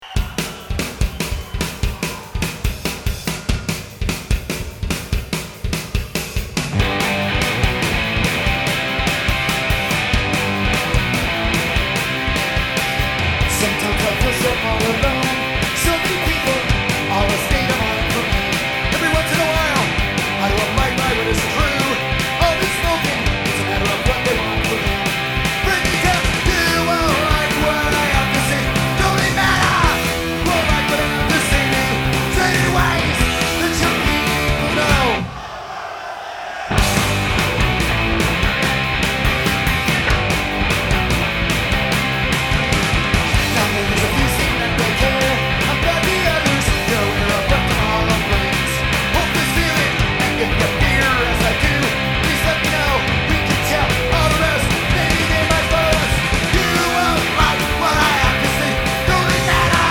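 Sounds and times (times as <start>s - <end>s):
crowd: 0.0s - 59.8s.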